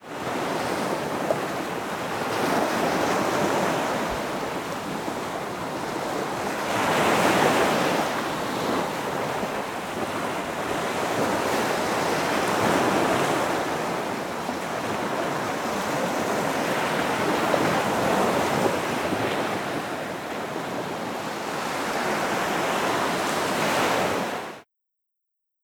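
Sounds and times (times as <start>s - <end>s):
surf at the Golden Gate Bridge: 0.0s - 24.6s.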